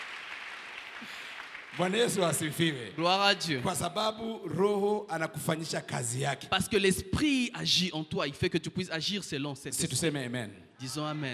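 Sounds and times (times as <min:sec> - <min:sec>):
congregation applauding during a church service: 0:00.0 - 0:03.8
speech: 0:01.8 - 0:11.3.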